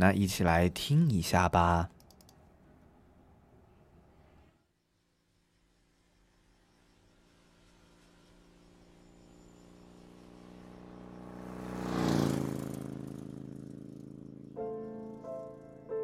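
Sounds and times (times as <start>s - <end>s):
speech: 0.0s - 2.0s
engine revving: 7.4s - 15.9s.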